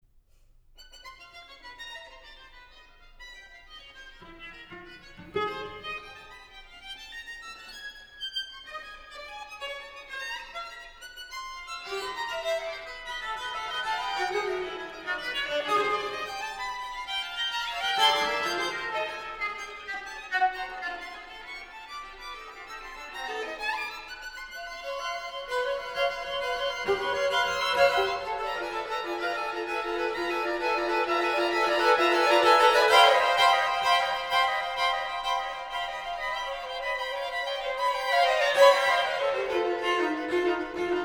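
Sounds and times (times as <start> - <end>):
string quartet playing presto: 11.7 - 41.0.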